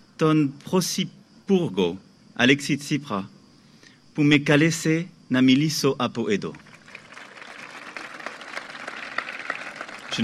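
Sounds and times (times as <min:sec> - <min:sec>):
speech: 0:00.2 - 0:03.4, 0:04.2 - 0:06.7
audience applause: 0:06.6 - 0:10.2.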